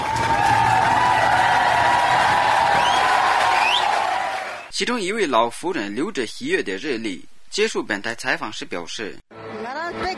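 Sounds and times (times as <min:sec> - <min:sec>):
crowd applauding and cheering: 0:00.0 - 0:04.7
speech: 0:04.8 - 0:10.1.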